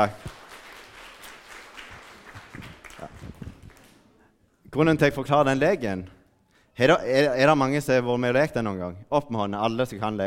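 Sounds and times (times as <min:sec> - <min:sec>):
speech: 0:00.0 - 0:00.4, 0:04.8 - 0:06.2, 0:06.8 - 0:10.2
audience applause: 0:00.0 - 0:04.2.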